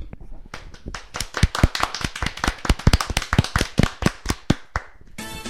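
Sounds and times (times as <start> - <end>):
applause: 0.5 - 5.0.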